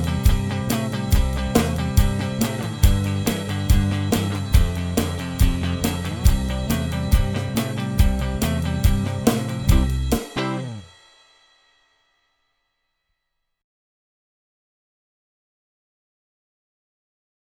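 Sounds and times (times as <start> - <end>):
solo backing track: 0.0 - 11.1.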